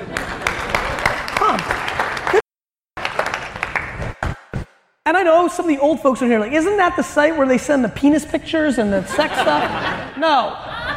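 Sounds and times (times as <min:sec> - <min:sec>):
audience clapping: 0:00.0 - 0:04.6
speech: 0:05.1 - 0:10.7
laughter: 0:09.0 - 0:10.9.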